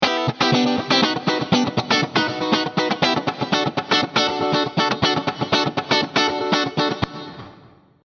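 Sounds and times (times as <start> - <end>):
funky guitar in a large hall: 0.0 - 7.8.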